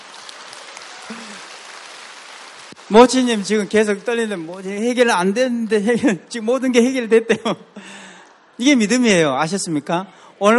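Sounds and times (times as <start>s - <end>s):
audience clapping: 0.0s - 5.4s
speech: 2.9s - 7.9s, 8.6s - 10.5s.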